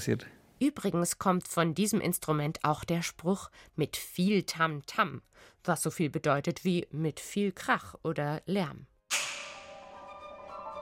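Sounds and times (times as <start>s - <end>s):
speech: 0.0s - 8.9s
orchestral whip wooden clap: 9.1s - 10.0s.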